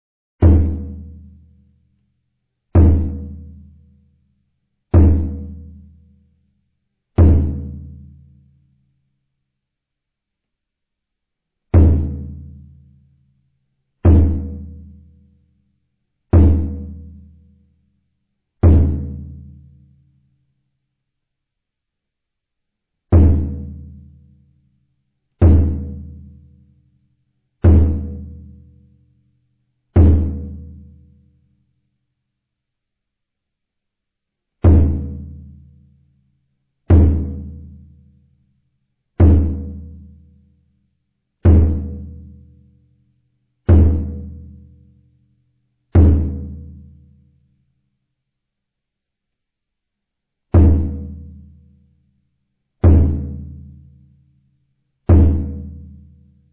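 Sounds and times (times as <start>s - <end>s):
Kyokushin drum: 0.4s - 1.3s, 2.8s - 3.6s, 5.0s - 5.8s, 7.2s - 8.1s, 11.8s - 12.6s, 14.1s - 14.9s, 16.4s - 17.2s, 18.6s - 19.6s, 23.2s - 24.0s, 25.4s - 26.3s, 27.7s - 28.5s, 30.0s - 30.9s, 34.7s - 35.5s, 36.9s - 37.8s, 39.2s - 40.0s, 41.5s - 42.3s, 43.7s - 44.6s, 46.0s - 46.9s, 50.6s - 51.4s, 52.9s - 53.7s, 55.1s - 56.0s.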